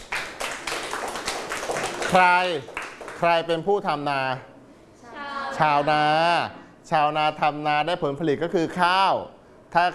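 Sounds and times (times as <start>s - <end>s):
class clapping hands: 0.0s - 3.4s
speech: 2.1s - 4.5s, 5.6s - 9.9s.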